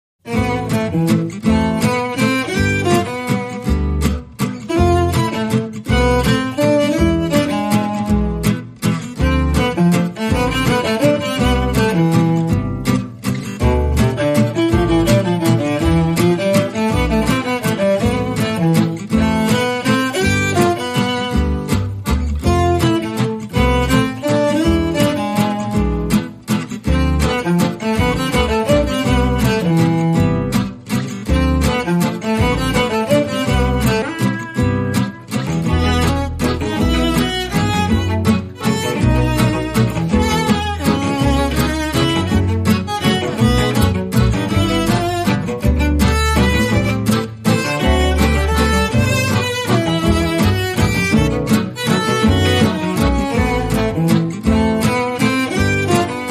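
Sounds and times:
bal musette waltz without drums: 0:00.3 - 0:56.2.

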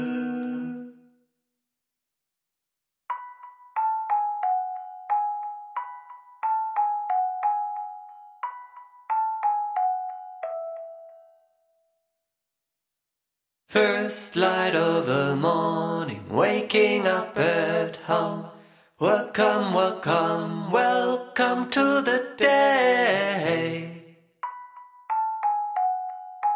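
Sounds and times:
vocals: 0:00.0 - 0:01.3, 0:13.7 - 0:24.4
music box: 0:03.1 - 0:11.4, 0:24.4 - 0:26.5.

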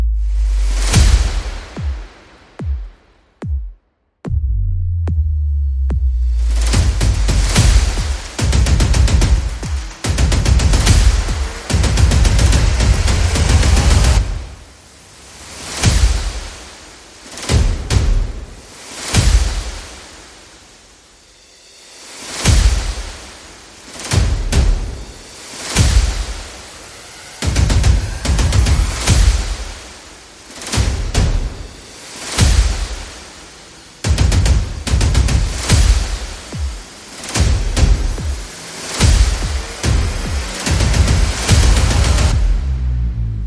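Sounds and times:
percussion: 0:00.1 - 0:43.4.

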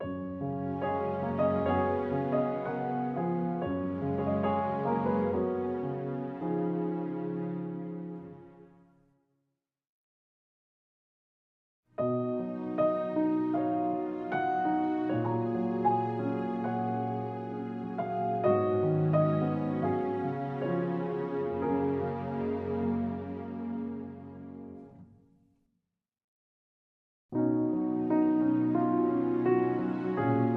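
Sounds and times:
underscore music with strings: 0:00.0 - 0:08.8, 0:12.3 - 0:25.0, 0:27.6 - 0:30.5.

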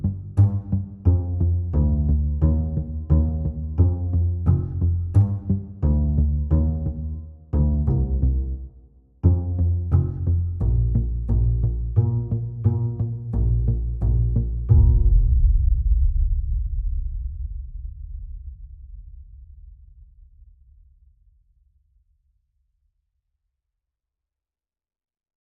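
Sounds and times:
bass: 0:00.0 - 0:21.2
percussion: 0:13.7 - 0:19.2.

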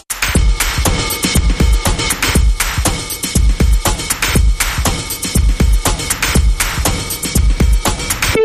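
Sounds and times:
reversed synthetic dance bumper: 0:00.4 - 0:08.4.

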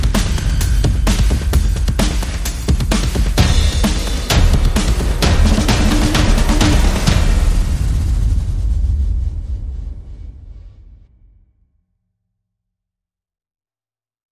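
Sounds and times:
percussion and effects: 0:00.0 - 0:10.2.

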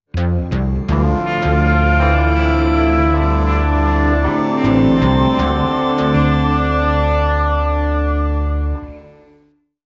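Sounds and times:
music sting: 0:00.2 - 0:09.4.

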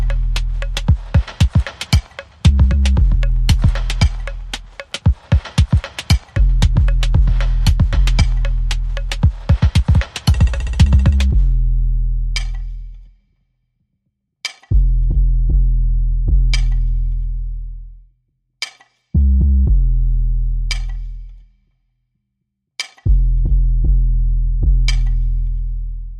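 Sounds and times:
bass: 0:00.0 - 0:01.1, 0:02.5 - 0:04.8, 0:06.4 - 0:09.3, 0:10.5 - 0:13.2, 0:14.7 - 0:18.1, 0:19.2 - 0:21.6, 0:23.1 - 0:26.1
drums: 0:00.0 - 0:11.6.

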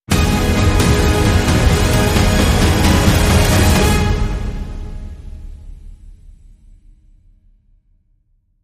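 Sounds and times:
music sting: 0:00.1 - 0:06.2.

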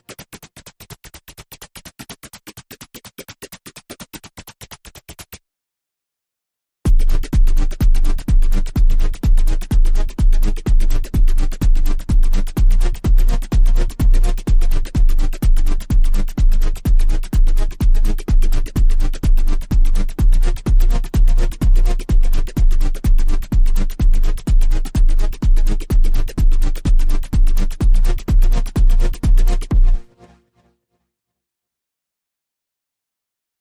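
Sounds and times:
drum and bass music: 0:06.9 - 0:30.1.

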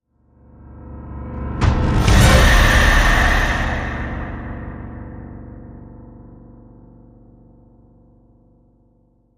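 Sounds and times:
horror impact hit: 0:01.3 - 0:06.8.

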